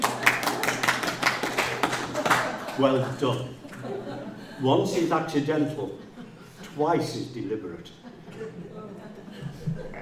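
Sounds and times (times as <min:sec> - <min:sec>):
audience clapping for people in the front row: 0:00.0 - 0:03.4
laughter: 0:01.7 - 0:07.0, 0:07.6 - 0:10.0
speech: 0:02.8 - 0:06.0, 0:06.8 - 0:09.1.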